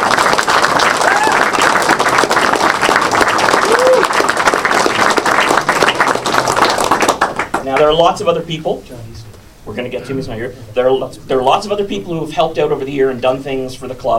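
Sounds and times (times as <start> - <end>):
audience applause: 0.0 - 7.6
scattered cheers: 0.9 - 1.7, 3.6 - 4.2
speech: 7.9 - 14.1.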